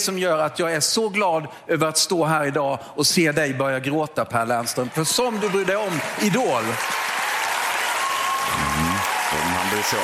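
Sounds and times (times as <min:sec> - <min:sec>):
speech: 0:00.0 - 0:07.1, 0:09.7 - 0:10.0
large crowd standing ovation applause: 0:04.8 - 0:10.0.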